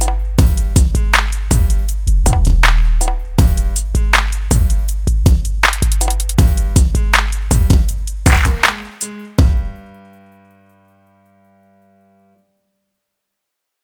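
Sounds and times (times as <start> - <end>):
bass: 0.0 - 9.8
drums: 0.0 - 9.9.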